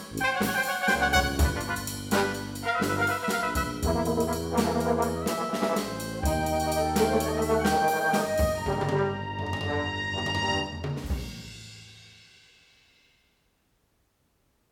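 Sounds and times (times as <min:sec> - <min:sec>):
brass instruments: 0:00.0 - 0:11.5.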